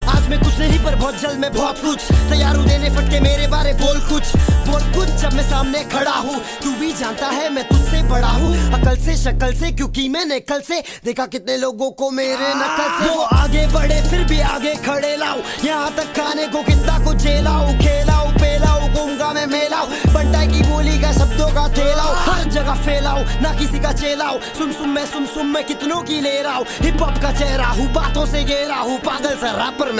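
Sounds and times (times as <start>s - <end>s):
person rapping: 0.0s - 29.9s.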